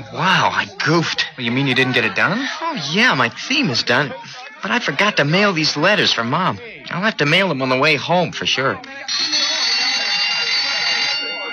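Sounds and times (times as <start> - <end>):
laughter: 0.0 - 6.8
speech: 0.0 - 9.4
electric school bell ringing: 7.5 - 11.5.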